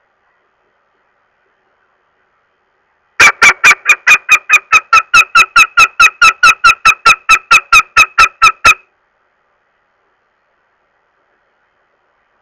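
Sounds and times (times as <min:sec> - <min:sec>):
northern goshawk uttering harsh nasal kek calls: 0:03.2 - 0:08.8.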